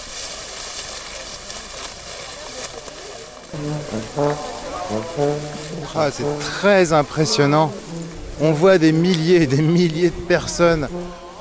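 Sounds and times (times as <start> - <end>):
footsteps crunching over very dry straw matting: 0.0 - 11.3
low droning tone: 3.6 - 7.2
speech: 3.6 - 11.3.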